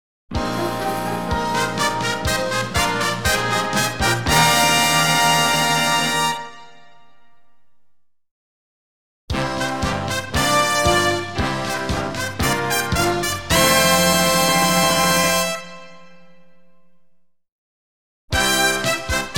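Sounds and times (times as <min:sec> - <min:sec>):
glamorous fanfare: 0:00.4 - 0:06.8, 0:09.4 - 0:15.9, 0:18.4 - 0:19.3.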